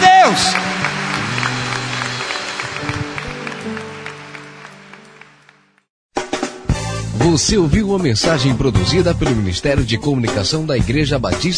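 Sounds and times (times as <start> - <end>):
audience applause: 0.0 - 5.8
speech: 7.4 - 11.5.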